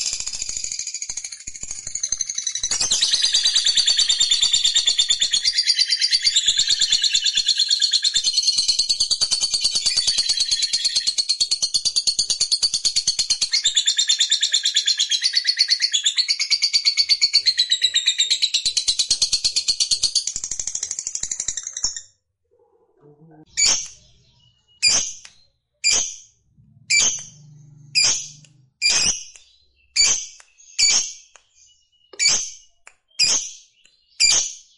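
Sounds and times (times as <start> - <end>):
lovebird chattering song: 0.0 - 22.1, 23.2 - 34.7
low hum: 26.4 - 28.8.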